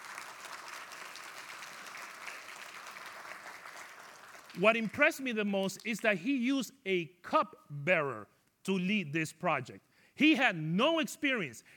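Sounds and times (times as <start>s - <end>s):
audience applause: 0.0s - 4.6s
speech: 4.6s - 11.7s.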